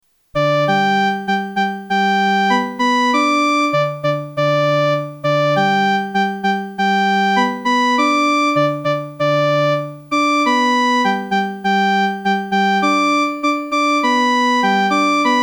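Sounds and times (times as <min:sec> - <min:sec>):
single-voice instrumental melody: 0:00.4 - 0:15.4.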